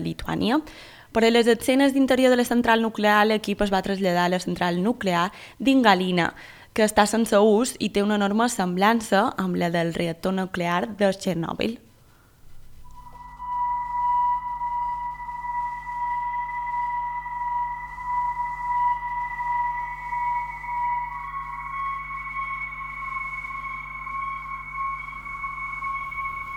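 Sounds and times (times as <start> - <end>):
speech: 0.0 - 11.8
constant low hum: 12.4 - 26.5
eerie electronic drone soundtrack piece: 12.8 - 26.5.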